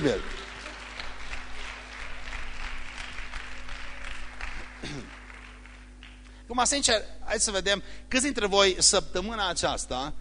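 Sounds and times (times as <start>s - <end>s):
speech: 0.0s - 0.4s, 6.5s - 10.1s
audience applause: 0.0s - 6.3s.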